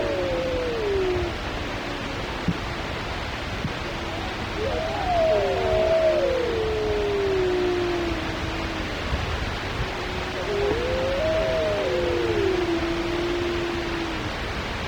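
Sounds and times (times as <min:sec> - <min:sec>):
solitary wolf howling in Alaska: 0:00.0 - 0:14.7.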